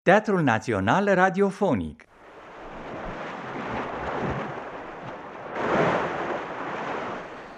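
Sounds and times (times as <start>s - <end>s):
speech: 0.0s - 2.1s
sea waves: 2.1s - 7.5s.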